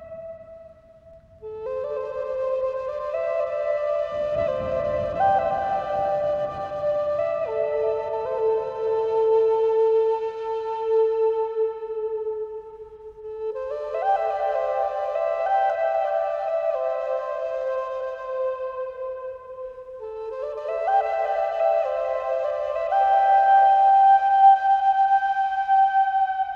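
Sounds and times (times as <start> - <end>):
Asian zen spa meditation music: 0.0 - 26.5
rain storm: 4.1 - 8.4.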